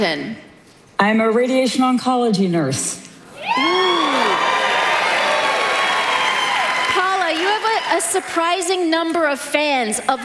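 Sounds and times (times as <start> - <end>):
speech: 0.0 - 3.8, 8.0 - 10.2
studio audience applause and cheering at a quiz show: 3.4 - 8.4.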